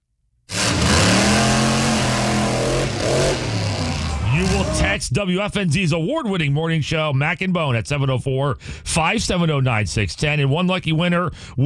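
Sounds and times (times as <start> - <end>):
monster truck engine roar: 0.5 - 5.0
speech: 4.7 - 11.6.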